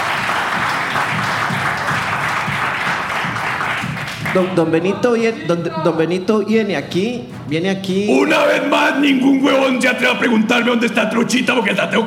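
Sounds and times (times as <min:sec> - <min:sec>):
applause: 0:00.0 - 0:04.6
speech: 0:04.4 - 0:12.0.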